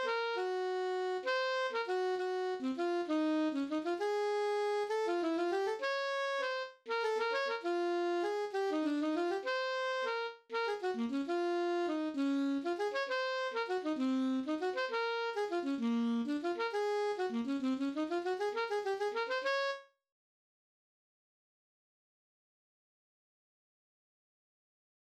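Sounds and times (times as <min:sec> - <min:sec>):
alto saxophone playing an etude: 0:00.0 - 0:19.9.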